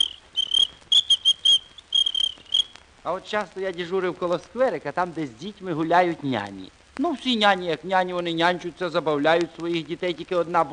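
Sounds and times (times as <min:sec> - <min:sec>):
small lady's whistle blown by a traffic officer: 0:00.0 - 0:02.7
speech: 0:03.0 - 0:10.7.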